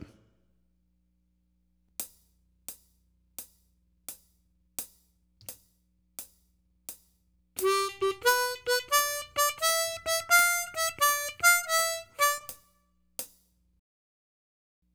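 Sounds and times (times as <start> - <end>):
blues harmonica: 7.6 - 12.6.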